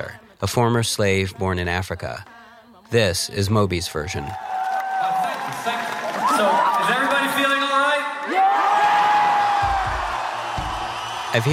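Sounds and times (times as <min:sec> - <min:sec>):
speech: 0:00.0 - 0:04.6
live concert audience cheering: 0:04.1 - 0:11.5
low thuds: 0:09.4 - 0:11.3.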